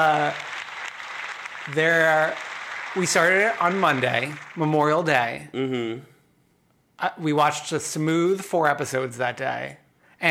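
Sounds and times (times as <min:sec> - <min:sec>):
speech: 0:00.0 - 0:00.5, 0:01.6 - 0:06.1, 0:07.0 - 0:10.3
inserted crowd applause sound effect: 0:00.0 - 0:05.2.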